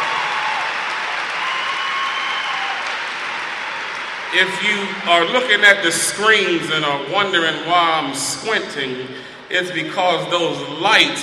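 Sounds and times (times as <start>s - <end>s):
audience applause: 0.0s - 5.1s
speech: 4.3s - 11.2s.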